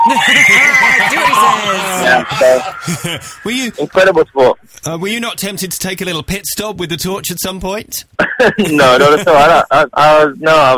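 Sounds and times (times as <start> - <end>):
crowd of fans cheering and making noise: 0.0 - 3.9
laughter: 0.0 - 4.0, 8.2 - 9.9
speech: 0.1 - 10.7.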